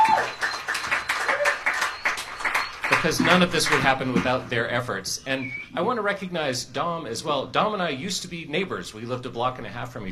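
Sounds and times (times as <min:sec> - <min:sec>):
scattered clapping from a small crowd at Porch Fest: 0:00.0 - 0:04.4
speech: 0:03.0 - 0:10.1.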